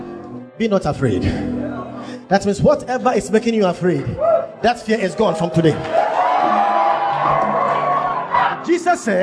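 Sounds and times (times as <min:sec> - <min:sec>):
speech: 0:00.6 - 0:01.6, 0:02.3 - 0:05.9, 0:08.7 - 0:09.2
crowd shouting and cheering: 0:04.0 - 0:09.2.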